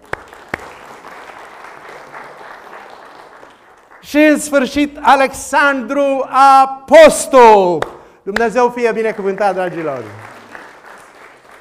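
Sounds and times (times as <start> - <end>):
audience applause: 0.0 - 4.6, 8.7 - 11.5
speech: 4.0 - 10.3.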